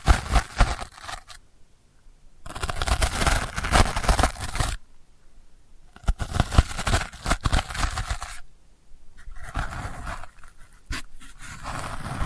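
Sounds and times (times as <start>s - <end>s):
delicate scratching: 0.0s - 1.4s, 2.4s - 4.8s, 5.9s - 8.5s, 9.2s - 12.2s.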